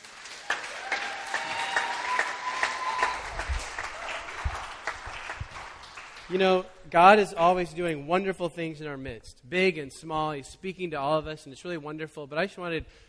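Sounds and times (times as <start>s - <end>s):
audience round of applause: 0.0s - 6.4s
speech: 6.3s - 13.0s.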